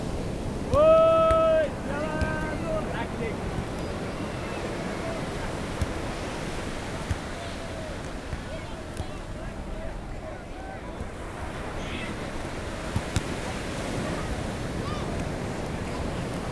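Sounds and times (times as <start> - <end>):
ocean waves at Copacabana beach in Rio: 0.0 - 16.5
people shouting at Copacabana beach volleyball: 0.7 - 5.6, 14.0 - 15.2.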